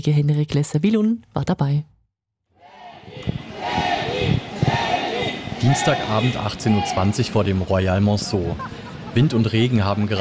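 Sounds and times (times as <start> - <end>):
speech: 0.0 - 1.9, 5.6 - 10.2
crowd of fans outside a hotel: 2.6 - 9.8.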